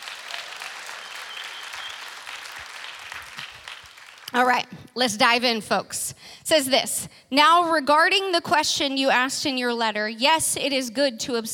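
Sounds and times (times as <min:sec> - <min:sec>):
crowd clapping: 0:00.0 - 0:04.6
speech: 0:04.3 - 0:11.5.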